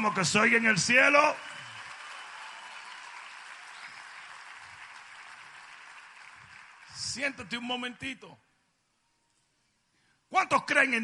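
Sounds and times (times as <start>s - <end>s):
speech: 0.0s - 1.6s, 7.2s - 8.5s, 10.3s - 11.0s
audience applause: 0.0s - 7.3s.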